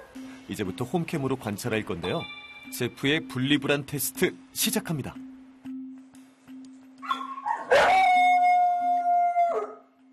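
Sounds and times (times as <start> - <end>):
speech: 0.5 - 5.3
dog howling from separation anxiety: 7.1 - 9.9.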